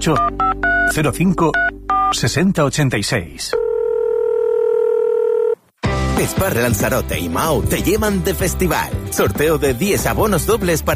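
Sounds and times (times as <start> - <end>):
speech: 0.0 - 3.6, 6.2 - 10.9
telephone dialing tones in a Spanish restaurant advert: 3.6 - 5.6.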